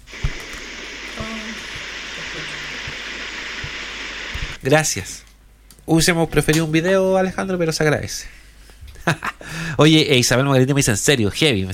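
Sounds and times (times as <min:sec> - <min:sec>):
heavy rain: 0:00.0 - 0:04.6
speech: 0:04.6 - 0:05.3, 0:05.9 - 0:08.4, 0:09.0 - 0:11.7.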